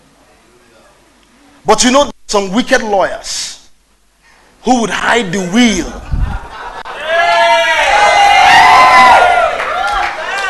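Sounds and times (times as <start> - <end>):
speech: 1.6 - 3.6, 4.6 - 6.2
laughter: 6.0 - 7.4
crowd shouting and cheering: 6.3 - 10.4.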